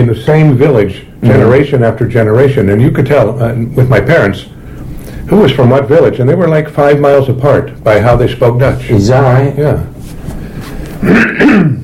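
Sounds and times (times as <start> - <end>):
speech: 0.0 - 9.9, 11.0 - 11.8
low hum: 0.0 - 11.8
person clearing throat: 11.0 - 11.8.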